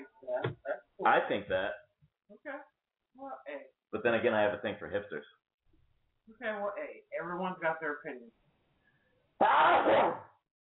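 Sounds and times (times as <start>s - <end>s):
speech: 1.0s - 1.8s, 4.0s - 5.4s, 6.3s - 8.4s, 9.4s - 10.3s
person sneezing: 9.4s - 10.2s.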